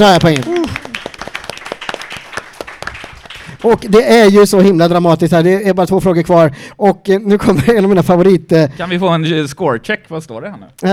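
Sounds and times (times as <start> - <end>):
speech: 0.0 - 0.5, 3.6 - 10.9
audience applause: 0.0 - 4.0.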